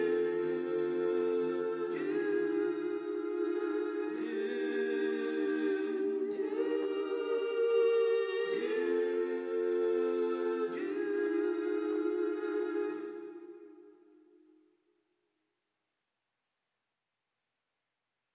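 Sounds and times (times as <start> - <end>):
soul voices: 0.0 - 14.6.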